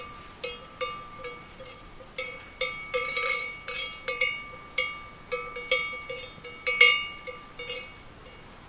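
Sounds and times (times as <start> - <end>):
cowbell on a moving cow: 0.0 - 8.6
wind: 0.0 - 8.6.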